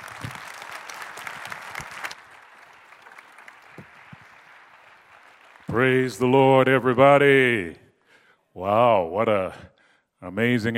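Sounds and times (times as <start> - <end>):
audience applause welcoming the chaplain of the United States Senate: 0.0 - 6.4
speech: 5.7 - 7.8, 8.6 - 10.7.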